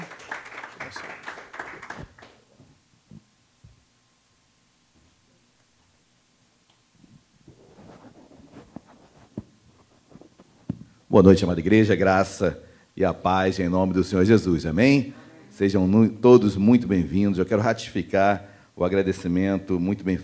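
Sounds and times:
church audience applauding: 0:00.0 - 0:02.4
speech: 0:11.2 - 0:20.2.

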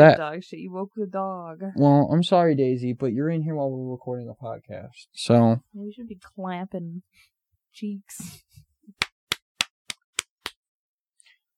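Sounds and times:
speech: 0:00.0 - 0:09.1
hand clap: 0:08.9 - 0:10.6.

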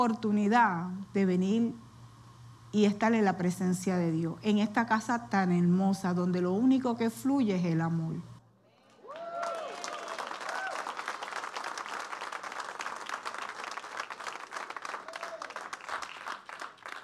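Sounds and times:
speech: 0:00.0 - 0:01.9, 0:02.7 - 0:08.3
audience applause: 0:09.0 - 0:17.0.

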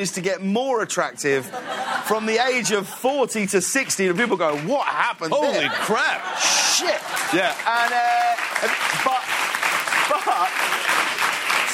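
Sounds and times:
speech: 0:00.0 - 0:09.2
laughter: 0:01.2 - 0:11.6
crowd applause: 0:03.7 - 0:11.7.

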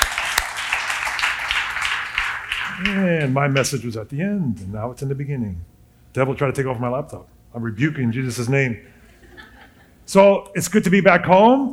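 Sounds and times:
crowd applauding: 0:00.0 - 0:03.6
speech: 0:02.8 - 0:09.0, 0:10.1 - 0:11.7
laughter: 0:09.0 - 0:10.1.

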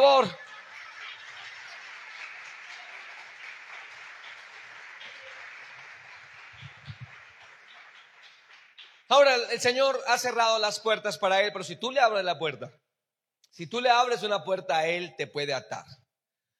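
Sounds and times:
audience applauding: 0:00.0 - 0:09.5
speech: 0:00.1 - 0:00.4, 0:09.1 - 0:12.8, 0:13.6 - 0:16.0.

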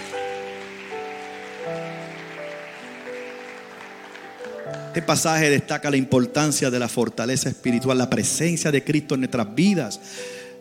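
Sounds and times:
audience applause: 0:00.0 - 0:05.4
speech: 0:05.0 - 0:10.4.

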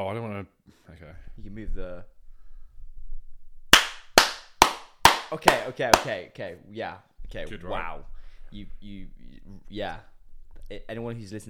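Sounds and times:
speech: 0:01.2 - 0:02.2, 0:05.3 - 0:10.1, 0:10.7 - 0:11.4
loud hand clap: 0:03.7 - 0:06.2.

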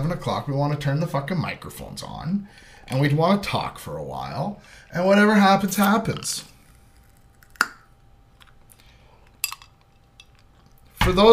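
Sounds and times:
speech: 0:00.0 - 0:06.5, 0:11.1 - 0:11.3
ice clinking against a glass: 0:09.4 - 0:10.4.

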